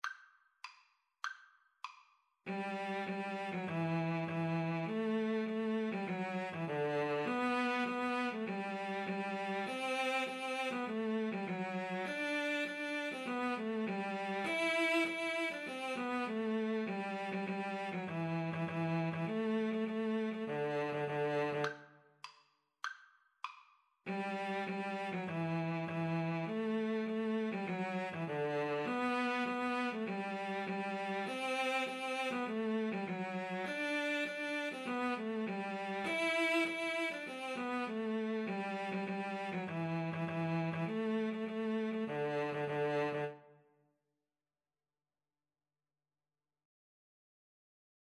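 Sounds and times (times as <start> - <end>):
cello duet: 2.5 - 21.8, 24.1 - 43.5.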